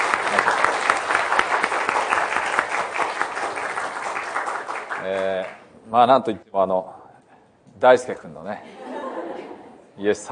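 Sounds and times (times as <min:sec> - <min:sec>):
audience applause: 0:00.0 - 0:05.6
speech: 0:05.9 - 0:07.0, 0:07.8 - 0:08.8, 0:10.0 - 0:10.3
laughter: 0:08.6 - 0:09.8.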